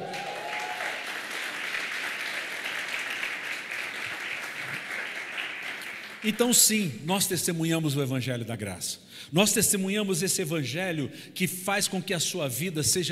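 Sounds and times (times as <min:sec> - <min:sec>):
applause: 0:00.0 - 0:06.7
speech: 0:06.2 - 0:13.1.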